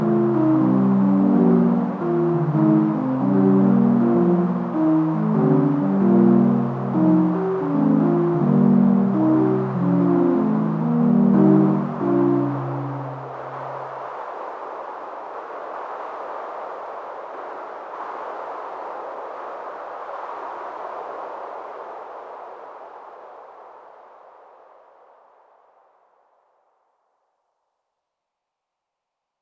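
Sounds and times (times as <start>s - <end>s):
polyrhythm: 0.0s - 13.8s.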